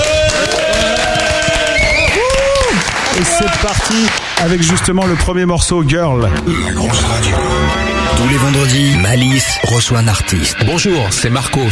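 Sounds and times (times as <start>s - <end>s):
audience applause: 0.0s - 4.7s
speech: 3.4s - 11.6s.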